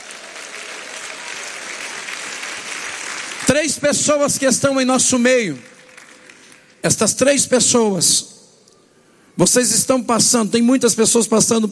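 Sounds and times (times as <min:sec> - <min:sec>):
audience clapping hands: 0:00.0 - 0:06.9
speech: 0:03.5 - 0:05.8, 0:06.8 - 0:08.3, 0:09.4 - 0:11.7.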